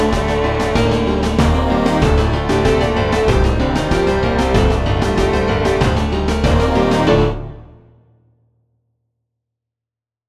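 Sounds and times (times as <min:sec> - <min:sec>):
piano music: 0:00.0 - 0:08.0.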